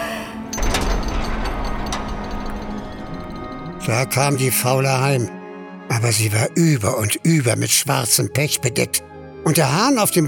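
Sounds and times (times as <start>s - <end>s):
gate closing mechanism grinding: 0.4s - 4.8s
ratcheting clatter of gears: 0.5s - 4.2s
speech: 3.9s - 5.4s, 6.0s - 10.2s.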